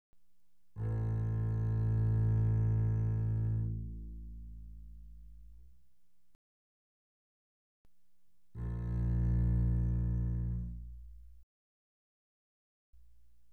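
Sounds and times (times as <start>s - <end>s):
double bass bowed arco mezzo forte on the A string: 0.7s - 5.8s, 8.6s - 11.4s.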